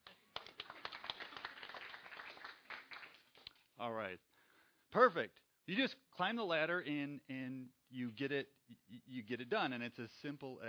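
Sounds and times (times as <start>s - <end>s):
audience clapping: 0.0s - 3.7s
speech: 3.8s - 4.3s, 4.9s - 10.6s.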